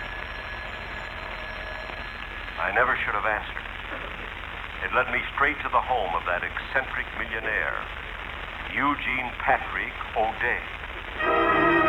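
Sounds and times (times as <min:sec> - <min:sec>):
telephone ringing: 0:00.0 - 0:02.9
speech: 0:02.6 - 0:04.1, 0:04.8 - 0:08.0, 0:08.6 - 0:11.4.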